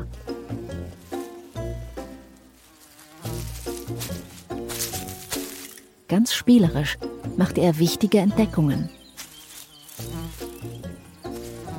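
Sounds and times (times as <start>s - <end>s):
swarming cockchafers buzzing: 0.0s - 11.7s
speech: 6.1s - 9.0s.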